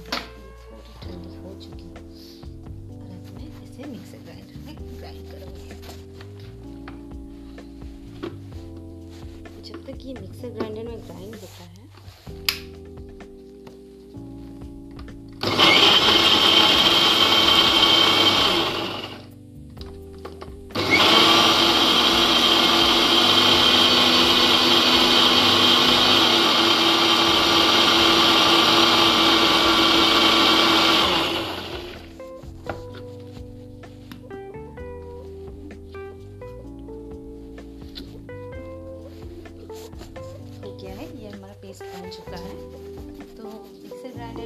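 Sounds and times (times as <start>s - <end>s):
speech: 9.9s - 11.8s
electric mixer grinder whirring: 15.4s - 19.3s, 20.7s - 32.8s.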